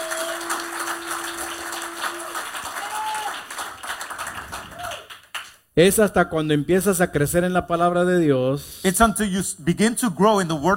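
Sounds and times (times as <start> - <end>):
audience applause: 0.0 - 5.6
speech: 5.8 - 10.7.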